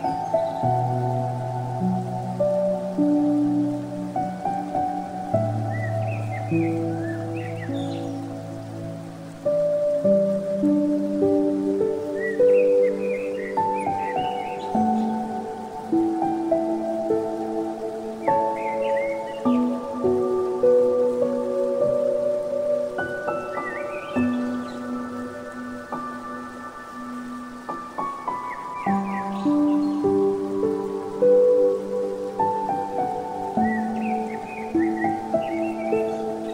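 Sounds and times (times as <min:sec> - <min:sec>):
piano: 0:00.0 - 0:36.5
bird: 0:05.5 - 0:08.7, 0:11.5 - 0:21.1, 0:22.8 - 0:30.9, 0:33.6 - 0:36.5.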